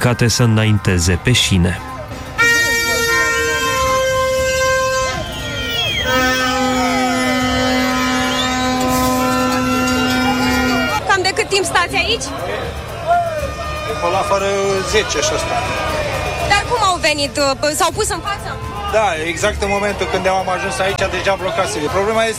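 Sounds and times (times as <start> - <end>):
speech: 0.0 - 1.9, 11.8 - 12.6, 14.0 - 16.0, 17.0 - 22.3
murmur of voices: 0.0 - 22.3
car horns honking in a traffic jam: 2.1 - 12.1.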